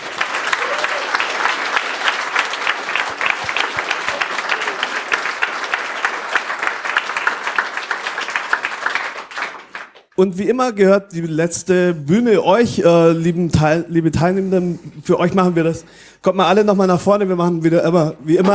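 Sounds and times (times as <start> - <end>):
audience applause: 0.0 - 10.1
speech: 10.2 - 18.5.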